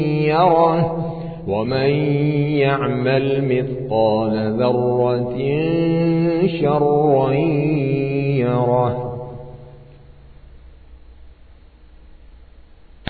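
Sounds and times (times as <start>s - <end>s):
Quran recitation by an Indian reciter: 0.0s - 10.1s.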